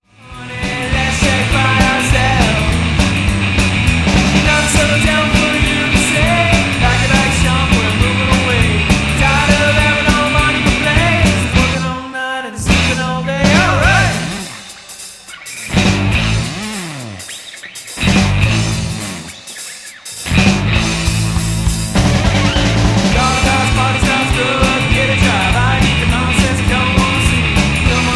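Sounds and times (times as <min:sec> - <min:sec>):
wrecked chords: 0:00.0 - 0:12.0, 0:12.7 - 0:28.1.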